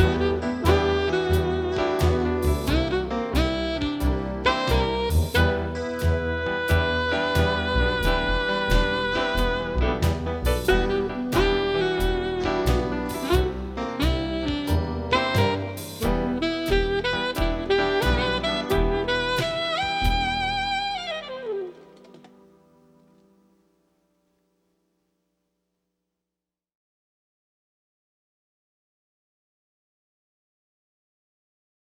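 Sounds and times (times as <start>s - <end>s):
funky blues music: 0.0s - 22.2s.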